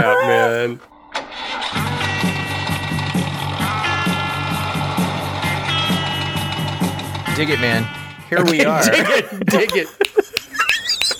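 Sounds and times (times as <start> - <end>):
laughter: 0.0 - 0.8, 8.3 - 11.1
Volkswagen van engine starting and chugging: 0.0 - 8.6
speech: 0.2 - 0.9, 7.4 - 10.0.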